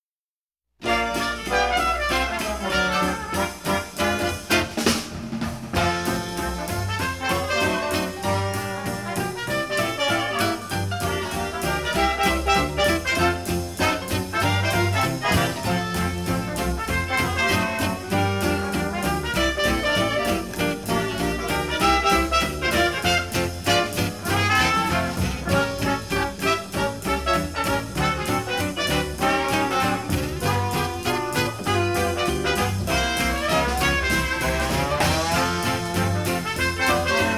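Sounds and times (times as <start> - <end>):
dixieland jazz: 0.8 - 37.3.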